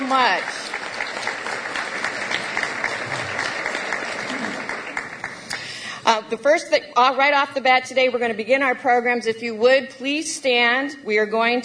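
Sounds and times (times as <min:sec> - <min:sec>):
audience applause: 0:00.0 - 0:05.8
speech: 0:00.1 - 0:01.2, 0:06.1 - 0:11.6.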